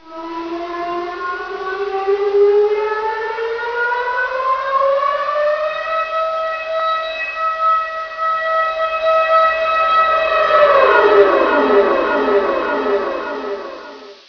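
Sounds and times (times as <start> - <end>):
siren: 0.0 - 14.2.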